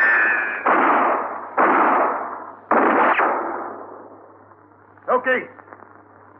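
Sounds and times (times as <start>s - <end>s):
sharp loud gunshots in a radio drama standoff: 0.0s - 4.4s.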